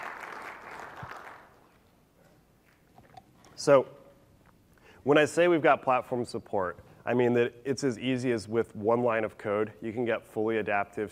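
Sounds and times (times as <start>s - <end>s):
audience cheering: 0.0s - 1.5s
speech: 3.6s - 4.0s, 5.0s - 11.0s.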